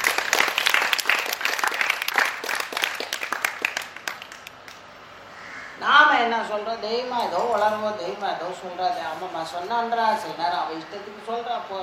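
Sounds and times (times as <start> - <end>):
audience clapping: 0.0 - 4.9
speech: 6.2 - 11.8.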